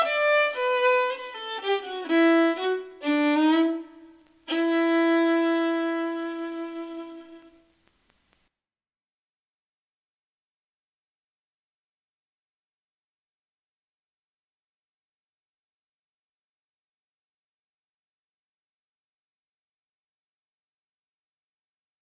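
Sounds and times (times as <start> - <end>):
slow folk tune: 0.0 - 7.7.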